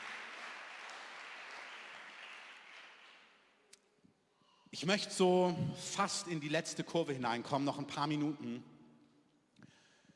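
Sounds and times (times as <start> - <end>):
audience applause: 0.0 - 3.3
speech: 4.7 - 8.7.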